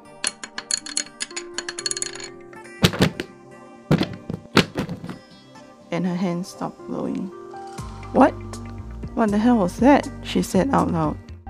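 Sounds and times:
books, pencils and chair dropping onto surface: 0.6 - 3.3, 3.9 - 5.3
speech: 5.9 - 7.4, 8.1 - 8.5, 9.2 - 11.2.

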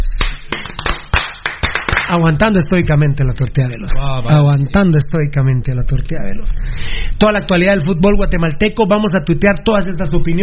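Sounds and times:
clapping: 0.2 - 2.1
speech: 2.1 - 10.4.

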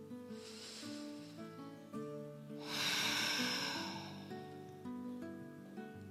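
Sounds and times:
steady sustained music tones: 0.0 - 6.0
deep slow breaths during a guided breathing exercise: 0.3 - 1.7, 2.6 - 4.5.

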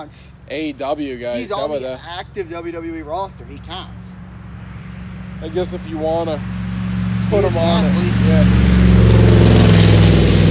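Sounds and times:
speech: 0.0 - 4.2, 5.4 - 6.6, 7.3 - 8.7
car driving past: 2.0 - 10.4.

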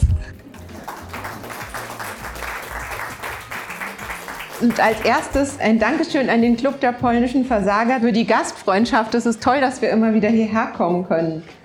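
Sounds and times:
audience applause: 0.4 - 5.4
speech: 4.6 - 11.6.

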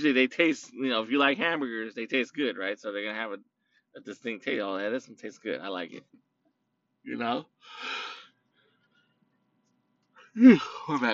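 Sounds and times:
speech: 0.0 - 6.3, 7.0 - 8.1, 10.4 - 11.1
person yawning: 7.7 - 8.3, 10.4 - 11.0.

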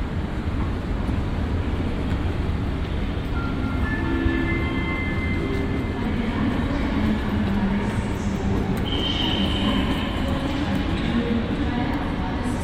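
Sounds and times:
trains rumbling at Cologne Central Station: 0.0 - 12.6
crowd noise at Cologne Central Station: 3.4 - 12.6.

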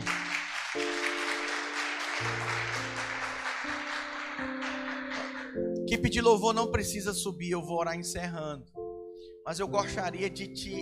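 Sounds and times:
audience applauding: 0.0 - 5.7
sustained keyboard chords: 0.0 - 10.8
speech: 5.9 - 8.8, 9.5 - 10.8.

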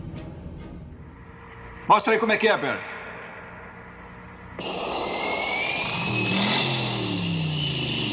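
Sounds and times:
rising whine: 0.9 - 8.1
speech: 1.9 - 2.9
V8 car engine revving: 4.0 - 8.1.

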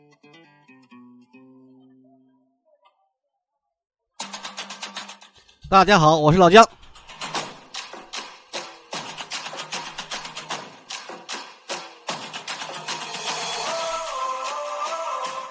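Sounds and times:
speech: 5.7 - 6.8
theme song with punchy rhythmic beats: 7.2 - 15.4.

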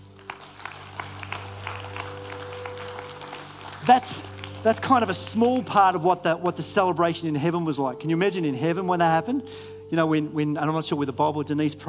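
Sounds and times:
audience applause: 0.0 - 6.2
speech: 3.8 - 11.8.

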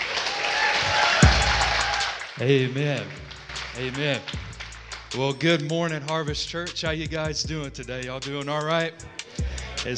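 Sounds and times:
church congregation clapping to welcome the youth pastor: 0.0 - 5.5
speech: 2.4 - 9.2.

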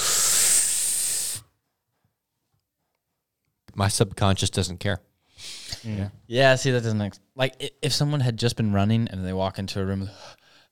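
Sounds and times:
heavy breathing in: 0.0 - 1.5, 10.1 - 10.7
speech: 3.8 - 10.4.

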